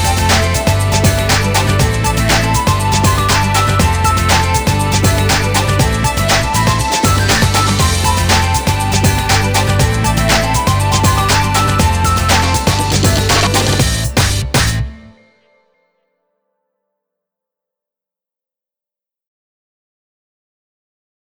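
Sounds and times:
instrumental music: 0.0 - 16.0.

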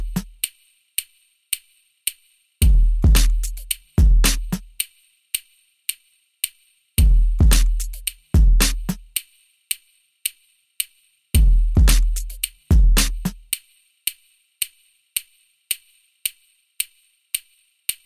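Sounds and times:
hip hop music: 0.0 - 0.4, 2.6 - 4.8, 7.0 - 9.1, 11.4 - 13.4.

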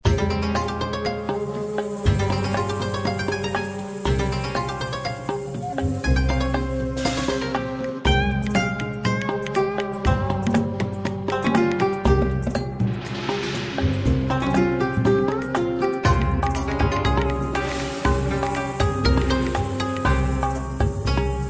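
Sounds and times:
Japanese music: 0.0 - 21.4.

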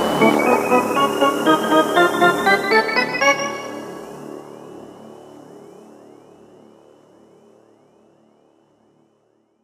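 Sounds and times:
space background music: 0.2 - 4.6.

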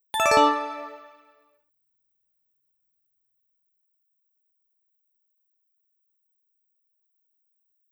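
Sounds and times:
ringtone: 0.2 - 1.3.

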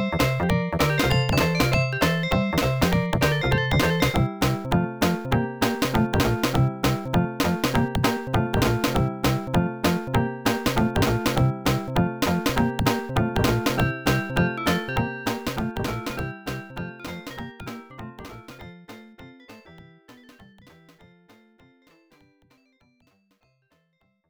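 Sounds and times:
drum solo: 0.0 - 18.6.

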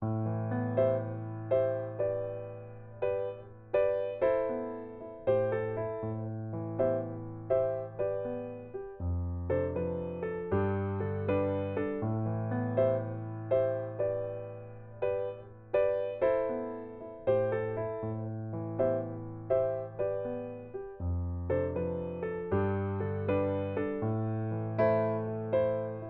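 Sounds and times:
piano theme: 0.0 - 26.0.

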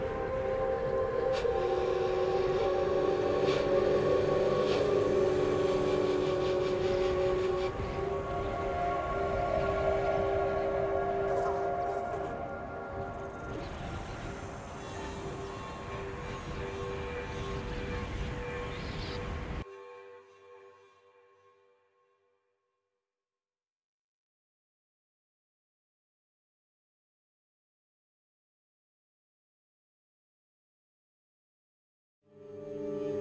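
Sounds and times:
story ambient music: 0.0 - 22.2, 32.3 - 33.2.

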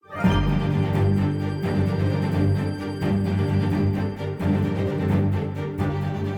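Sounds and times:
level end jingle: 0.0 - 6.2.

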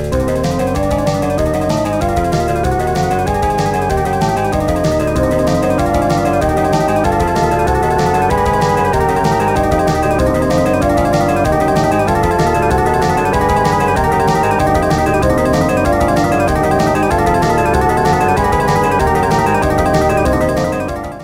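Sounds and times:
guitar melody: 0.1 - 21.2.

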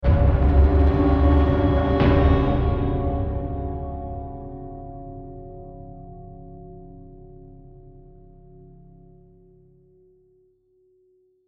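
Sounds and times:
tense combat music ending: 0.0 - 5.2.

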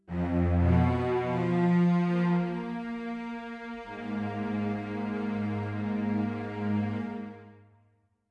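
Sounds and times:
strings: 0.0 - 7.6.

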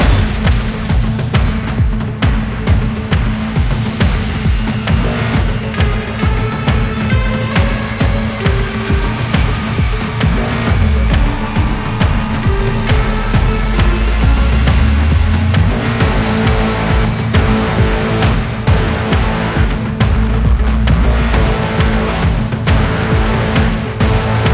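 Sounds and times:
boss combat music loop: 0.0 - 24.5.

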